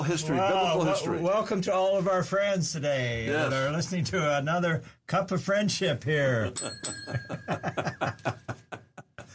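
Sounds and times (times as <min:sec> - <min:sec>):
speech: 0:00.1 - 0:08.4
friendship bell ringing: 0:06.6 - 0:08.1
snickering laughter: 0:07.1 - 0:09.3.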